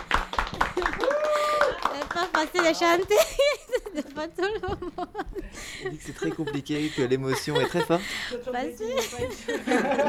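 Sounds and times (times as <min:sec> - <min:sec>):
small group clapping: 0:00.0 - 0:03.6
speech: 0:02.2 - 0:10.0
laughter: 0:03.1 - 0:10.0.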